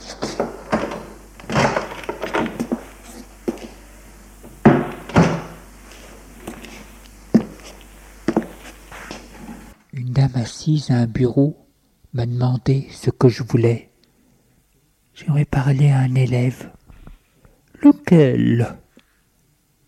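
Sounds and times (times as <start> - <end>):
door opening and closing with wooden knocks: 0.2 - 3.2, 4.5 - 5.6
speech: 10.2 - 13.9, 15.2 - 16.7, 18.1 - 18.8.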